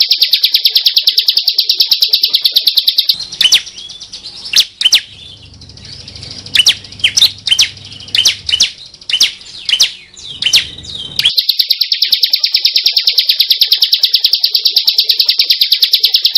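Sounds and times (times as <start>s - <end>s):
Bar-winged prinia song: 0.0s - 16.3s
soft hum: 3.1s - 11.2s.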